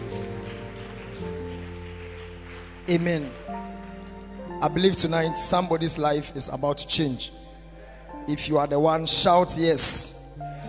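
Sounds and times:
audience clapping: 0.0s - 5.3s
speech: 2.9s - 3.7s, 4.6s - 7.4s, 8.3s - 10.2s.

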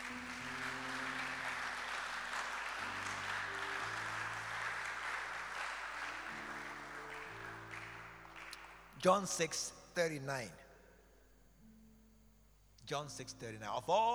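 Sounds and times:
audience clapping: 0.0s - 9.6s
speech: 9.0s - 10.6s, 12.9s - 14.1s.

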